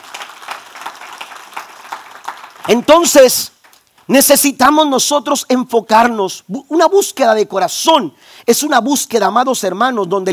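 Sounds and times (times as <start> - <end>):
crowd audience applauding: 0.0 - 3.8
speech: 2.6 - 3.5, 4.1 - 10.3.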